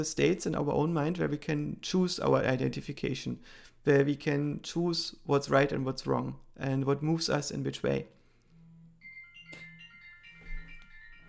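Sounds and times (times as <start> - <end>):
speech: 0.0 - 8.2
phone ringing with melodic electronic tune: 8.5 - 11.2.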